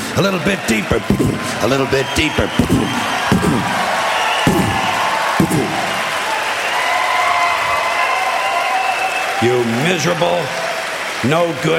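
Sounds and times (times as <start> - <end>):
crowd applauding and cheering: 0.0 - 11.7
speech: 0.2 - 4.0, 9.4 - 10.6, 11.2 - 11.7.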